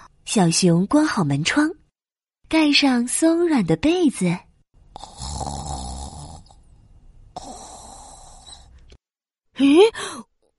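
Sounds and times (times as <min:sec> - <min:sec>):
speech: 0:00.4 - 0:01.8, 0:02.5 - 0:04.4, 0:09.6 - 0:10.3
snoring: 0:04.9 - 0:06.7, 0:07.3 - 0:08.8.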